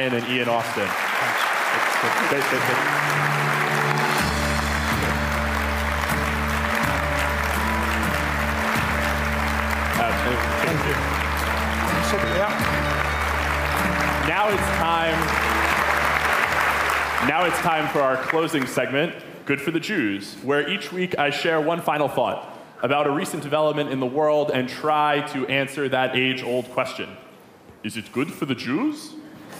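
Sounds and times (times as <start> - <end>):
speech: 0.0 - 3.5, 10.2 - 11.3, 12.1 - 13.0, 14.3 - 15.5, 17.2 - 27.2, 27.8 - 29.2
audience applause: 0.0 - 18.8.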